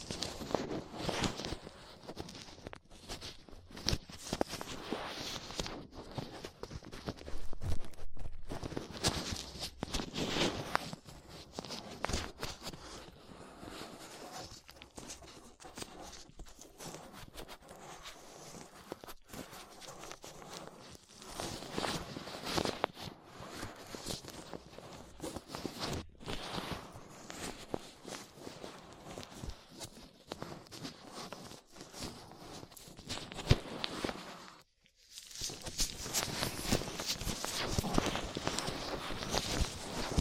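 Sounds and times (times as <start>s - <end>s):
ear cleaning with latex gloves, dental pick and cotton swabs: 0.0s - 40.1s.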